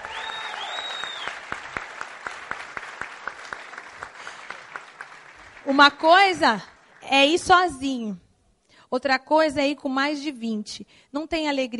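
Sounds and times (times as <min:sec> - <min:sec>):
audience applause: 0:00.0 - 0:07.0
speech: 0:05.7 - 0:08.2, 0:08.9 - 0:11.7.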